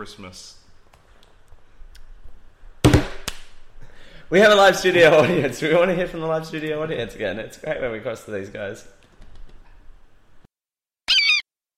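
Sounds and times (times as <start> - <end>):
speech: 0.0 - 0.6, 4.3 - 9.0
bird chirping in the studio: 11.1 - 11.4.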